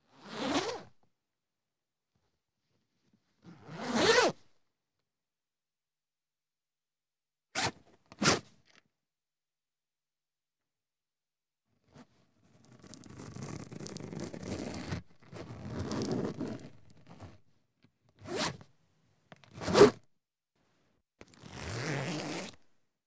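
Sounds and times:
zipper being fastened: 0.1 - 0.9, 3.4 - 4.4, 7.5 - 8.8, 11.8 - 17.4, 18.2 - 18.6, 19.4 - 20.0, 21.2 - 22.6.

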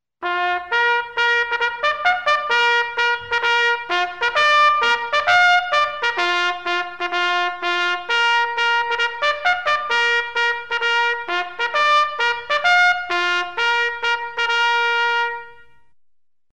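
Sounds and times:
military bugle: 0.2 - 15.8.

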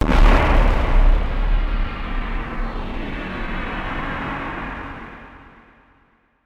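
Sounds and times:
bomb explosion with receding effect: 0.0 - 4.4.

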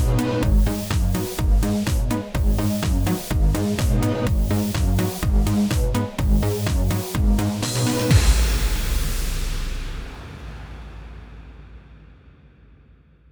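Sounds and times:
fast dance synthesizer music: 0.0 - 10.1.

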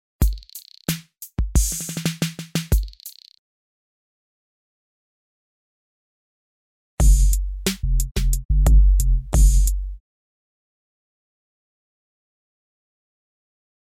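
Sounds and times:
medium rhythm percussion: 0.2 - 3.4, 7.0 - 10.0.

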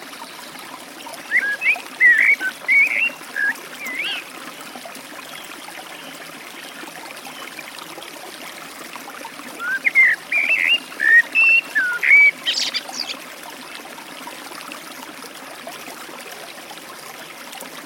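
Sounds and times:
Eurasian blackbird delivering warbled whistles beside a forest stream: 1.3 - 4.2, 9.6 - 13.2.

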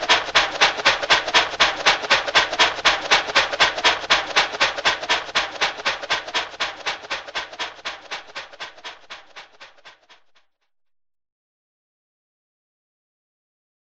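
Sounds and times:
cartoon steam locomotive sound imitating a train: 0.0 - 10.2.

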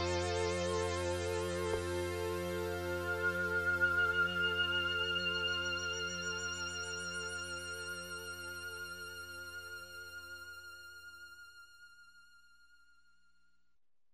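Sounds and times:
slow synthesizer music with harmonic movement: 0.0 - 10.6.

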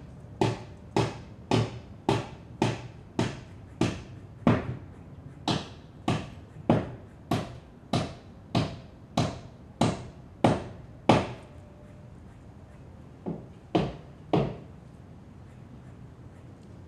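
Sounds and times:
sounds outside the window: 0.0 - 16.8
hammer knocking indoors: 0.4 - 4.8, 5.4 - 11.4, 13.2 - 14.6.

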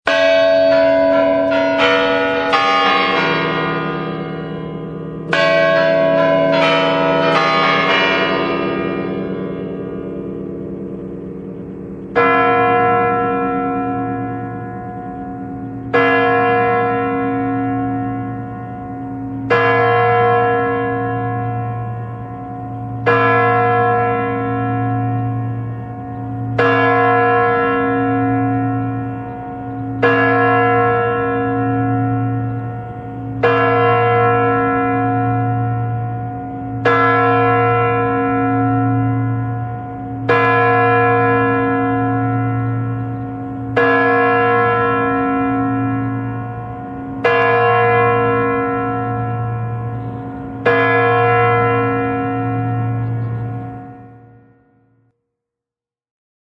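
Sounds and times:
Spasskaya Tower Kremlin clock chimes on New Year: 0.1 - 54.4.

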